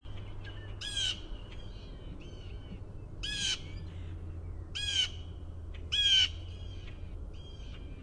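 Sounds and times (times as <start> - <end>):
blue jay jeer calls: 0.2 - 8.0.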